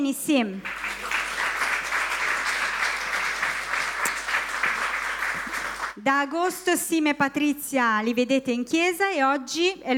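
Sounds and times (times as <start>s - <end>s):
speech: 0.0s - 0.8s, 6.0s - 9.9s
audience applause: 0.6s - 6.0s.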